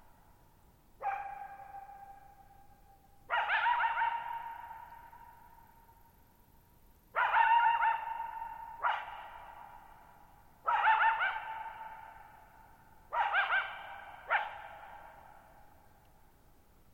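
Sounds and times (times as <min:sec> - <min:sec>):
coyote barking and yipping: 0:01.0 - 0:02.3, 0:03.3 - 0:05.2, 0:07.2 - 0:09.9, 0:10.7 - 0:12.4, 0:13.1 - 0:15.4.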